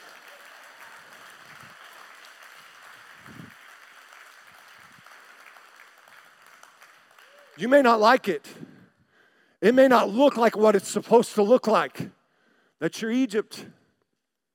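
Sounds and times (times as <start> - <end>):
audience clapping: 0.0 - 8.2
speech: 7.6 - 8.6, 9.6 - 12.2, 12.8 - 13.8.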